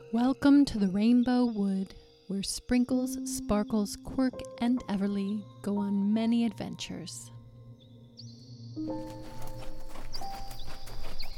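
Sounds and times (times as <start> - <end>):
speech: 0.1 - 7.3, 8.8 - 9.4
unicorns' hooves clip-clopping on a winding road: 8.9 - 11.3.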